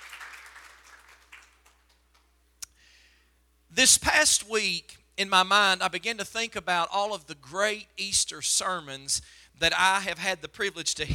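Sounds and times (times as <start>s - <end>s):
audience clapping: 0.0s - 2.3s
speech: 3.8s - 11.1s.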